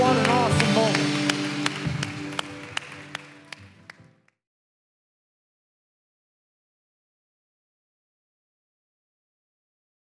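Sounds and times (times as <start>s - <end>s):
audience applause in a church: 0.0s - 4.4s.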